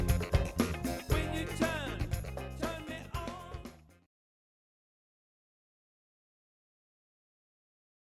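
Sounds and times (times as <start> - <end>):
variety band playing: 0.0 - 3.8.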